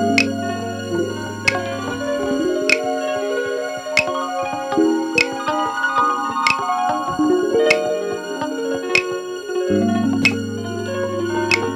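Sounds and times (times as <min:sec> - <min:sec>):
Brazilian instrumental groove: 0:00.1 - 0:11.7.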